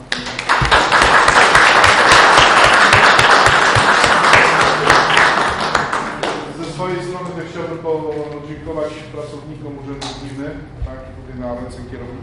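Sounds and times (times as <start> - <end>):
audience applause: 0.1 - 6.5
speech: 8.9 - 12.2.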